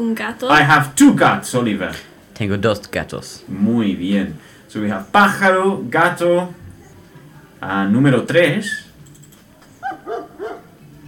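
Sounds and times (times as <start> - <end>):
speech: 0.0 - 6.6, 7.6 - 8.8
dog barking: 9.8 - 10.8.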